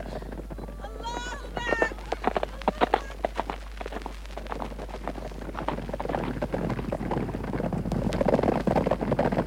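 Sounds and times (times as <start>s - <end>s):
voices: 0.0s - 3.4s
horse hooves galloping: 0.0s - 9.4s
wind noise: 0.0s - 9.4s.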